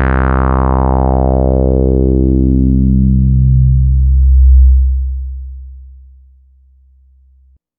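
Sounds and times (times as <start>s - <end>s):
sawtooth oscillator with low-pass filter resonance: 0.2s - 6.3s.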